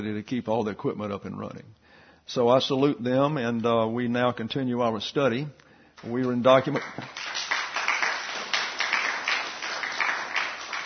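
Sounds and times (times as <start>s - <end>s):
speech: 0.0s - 7.4s
applause: 6.0s - 10.8s.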